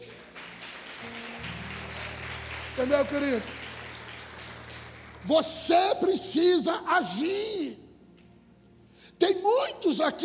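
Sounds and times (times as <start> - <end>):
audience applause: 0.0 - 6.1
sustained low musical tones: 0.0 - 10.2
speech: 2.8 - 3.6, 5.2 - 7.8, 9.2 - 10.2.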